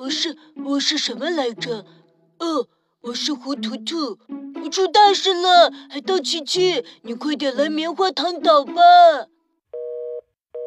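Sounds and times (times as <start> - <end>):
speech: 0.0 - 9.3
phone hang-up busy tone: 9.8 - 10.6.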